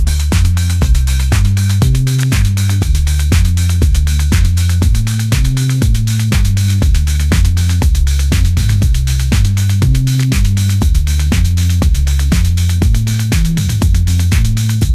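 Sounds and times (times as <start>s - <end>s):
pop groove: 0.0s - 14.9s.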